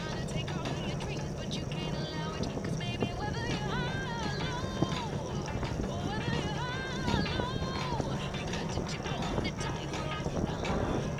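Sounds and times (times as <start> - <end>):
dense rustle and rumble of a ride: 0.0 - 11.1
low churning: 0.0 - 11.1
quiet music: 0.0 - 11.1.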